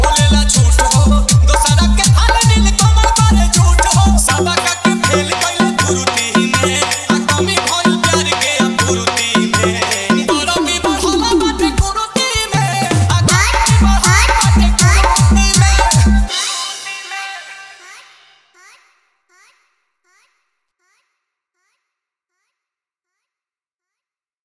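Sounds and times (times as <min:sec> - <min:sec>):
hard jhan jhan bass dance mix: 0:00.0 - 0:16.9.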